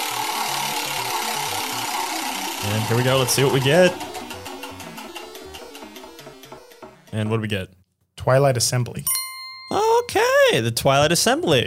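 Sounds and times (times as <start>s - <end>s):
game wheel spinning: 0.0s - 7.2s
low stepped tone pattern: 0.0s - 7.5s
speech: 2.7s - 4.1s, 7.1s - 9.8s, 10.5s - 11.6s.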